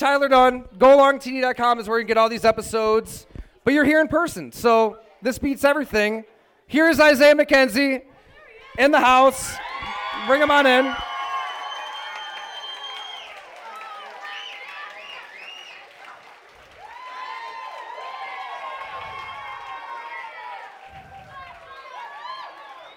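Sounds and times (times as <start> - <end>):
speech: 0.0 - 8.1, 8.8 - 11.1
people shouting and whooping: 8.4 - 15.3, 16.8 - 22.9
live crowd cheering and applauding: 8.8 - 22.9.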